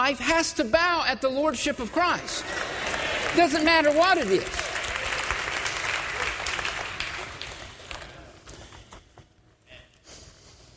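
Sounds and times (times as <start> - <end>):
speech: 0.1 - 2.7, 3.3 - 4.6
audience applause: 2.2 - 8.3.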